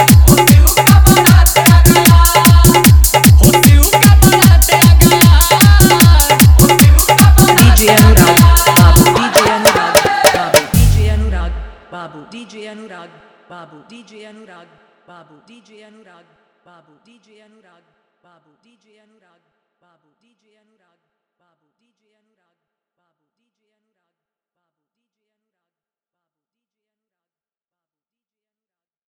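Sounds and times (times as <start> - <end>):
dholki bass dance mix: 0.0 - 11.8.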